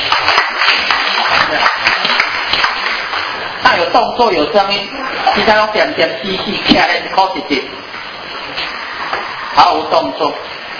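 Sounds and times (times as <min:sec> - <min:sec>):
group clapping hands: 0:00.0 - 0:03.4
speech: 0:03.9 - 0:07.9, 0:09.6 - 0:10.5.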